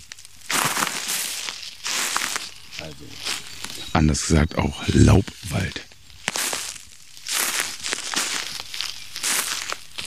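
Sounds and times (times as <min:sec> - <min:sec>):
footsteps in dry beech leaves: 0:00.0 - 0:03.9, 0:06.0 - 0:10.0
speech: 0:02.8 - 0:05.9.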